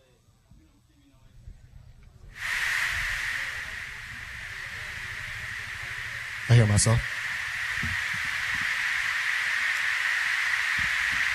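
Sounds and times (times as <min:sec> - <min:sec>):
white noise: 0:01.1 - 0:11.3
speech: 0:06.5 - 0:07.2.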